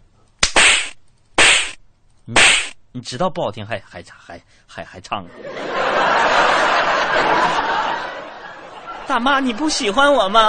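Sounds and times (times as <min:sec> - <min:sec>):
punch to the face: 0:00.4 - 0:01.8, 0:02.4 - 0:02.8
speech: 0:02.3 - 0:07.7, 0:09.1 - 0:10.4
laughter: 0:05.3 - 0:10.4.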